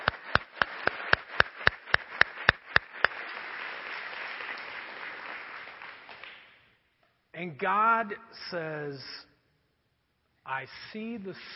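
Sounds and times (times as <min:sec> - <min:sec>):
audience clapping and cheering: 0:00.0 - 0:06.6
speech: 0:07.4 - 0:09.3, 0:10.5 - 0:11.5.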